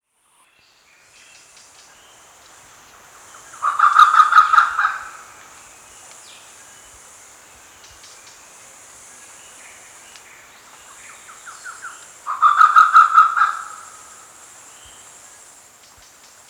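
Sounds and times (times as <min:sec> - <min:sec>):
Grey peacock-pheasant giving harsh barking notes: 0:03.6 - 0:05.2, 0:12.3 - 0:14.0.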